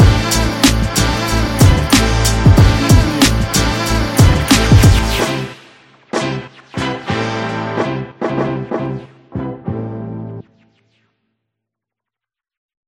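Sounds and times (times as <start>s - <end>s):
boom bap beat: 0.0s - 9.7s.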